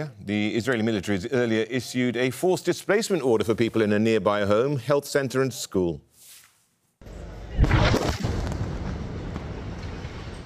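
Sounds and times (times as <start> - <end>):
speech: 0.0 - 6.1
airstrike destroying a house in Al-Nusirat camp, central Gaza: 7.6 - 10.4.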